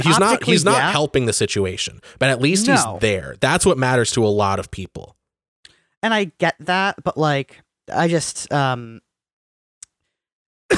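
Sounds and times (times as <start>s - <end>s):
laughter: 0.0s - 4.1s
speech: 0.0s - 5.2s, 6.0s - 9.0s
person coughing after inhaling saliva: 0.1s - 1.0s, 2.6s - 2.9s.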